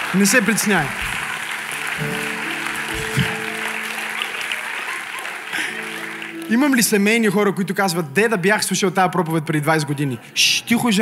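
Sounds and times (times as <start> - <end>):
audience clapping: 0.0 - 7.4
speech: 0.1 - 1.2, 2.0 - 2.2, 6.5 - 11.0.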